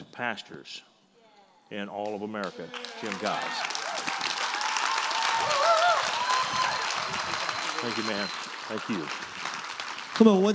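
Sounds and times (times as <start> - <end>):
speech: 0.2 - 0.9, 1.7 - 3.7, 7.8 - 9.3, 10.2 - 10.5
audience applause: 2.4 - 10.5
high whistle or cheer: 3.3 - 9.1.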